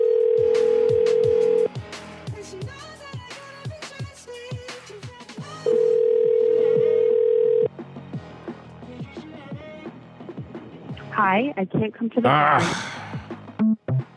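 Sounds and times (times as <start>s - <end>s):
telephone ringing tone on a call: 0.0s - 1.7s, 5.6s - 7.7s
speech: 11.3s - 13.0s.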